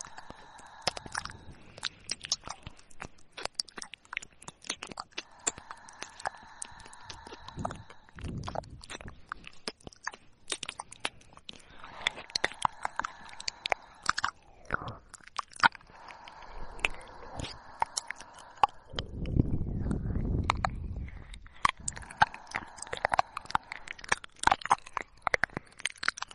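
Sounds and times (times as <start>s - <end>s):
low blowing rumble: 0.0s - 2.1s, 5.2s - 8.9s, 11.5s - 15.1s, 15.8s - 25.1s
soft breathy hiss: 0.0s - 3.4s, 5.0s - 9.7s, 10.9s - 26.3s
wet mouth clicks, smacks and tongue pops: 0.0s - 26.3s.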